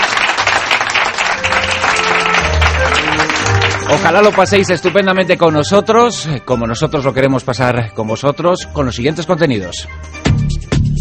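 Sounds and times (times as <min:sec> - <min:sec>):
studio audience applause: 0:00.0 - 0:05.4
speech: 0:03.9 - 0:10.2.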